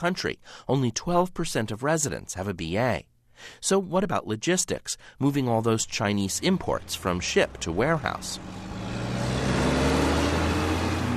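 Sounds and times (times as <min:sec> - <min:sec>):
speech: 0:00.0 - 0:09.0
tractor trailers on a dusty four-lane highway near a warehouse outside Rialto: 0:06.4 - 0:11.1.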